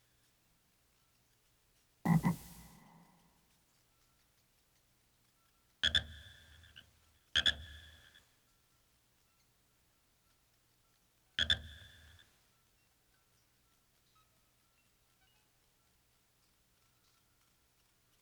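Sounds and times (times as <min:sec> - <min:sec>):
frog croaking: 0:02.1 - 0:03.1.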